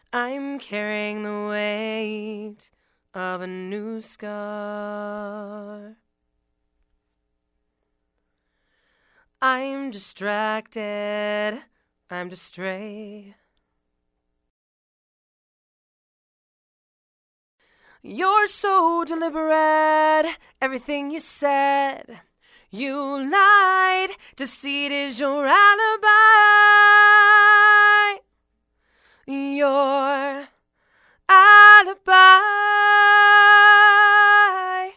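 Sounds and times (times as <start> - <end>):
female vocals: 0.0 - 6.0, 9.4 - 13.4, 17.9 - 28.2, 29.2 - 30.6, 31.2 - 34.9.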